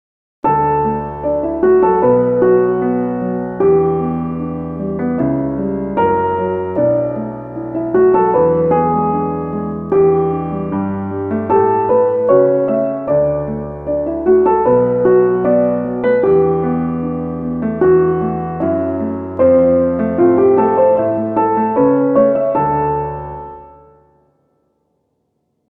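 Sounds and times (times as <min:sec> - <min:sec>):
piano theme: 0:00.4 - 0:24.8.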